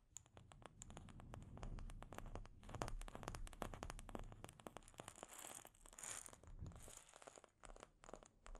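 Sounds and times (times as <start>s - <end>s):
delicate scratching and tapping on a microphone: 0.3s - 8.5s
soft low rubbing: 0.4s - 5.1s, 5.8s - 7.3s.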